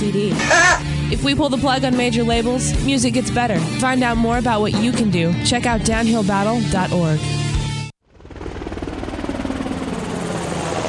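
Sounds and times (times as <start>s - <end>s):
speech: 0.1s - 7.4s
Navy Seahawk military helicopter flying: 0.3s - 1.2s, 8.0s - 10.8s.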